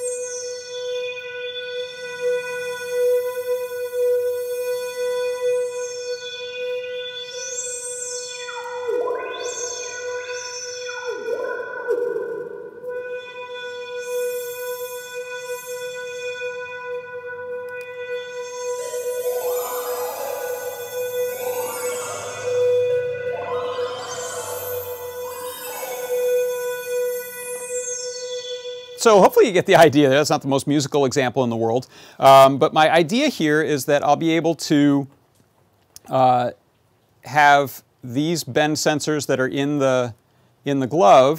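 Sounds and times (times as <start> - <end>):
held synth keyboard note with resonant filter sweep: 1.5 - 30.4
speech: 29.0 - 35.2, 36.1 - 36.6, 37.2 - 41.3.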